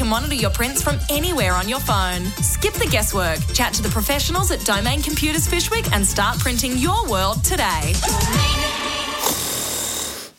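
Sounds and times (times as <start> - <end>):
speech: 0.1 - 8.8
loud snoring: 8.1 - 10.3.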